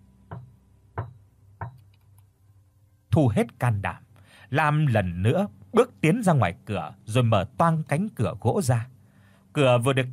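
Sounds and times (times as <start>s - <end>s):
dry knocks: 0.3s - 1.9s
speech: 3.2s - 8.9s, 9.6s - 10.1s.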